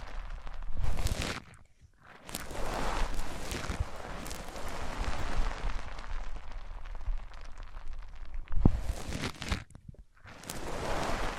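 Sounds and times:
microphone rubbed and scraped across different surfaces: 0.0s - 6.0s, 8.5s - 11.3s.

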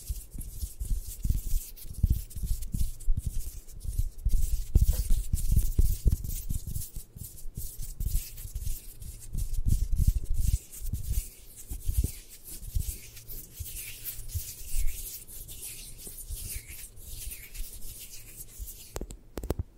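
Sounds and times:
scratching and rubbing strokes: 0.0s - 19.6s.

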